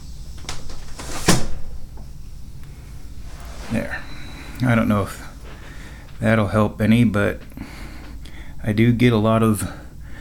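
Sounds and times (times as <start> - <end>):
window being closed: 0.3 - 2.2, 3.1 - 6.2
speech: 3.7 - 5.2, 6.2 - 7.6, 8.6 - 9.8.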